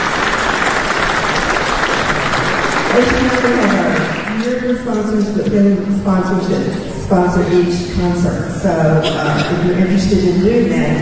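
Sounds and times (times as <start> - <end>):
concert audience applause thanking sponsors: 0.0 - 4.9
speech: 3.0 - 10.9.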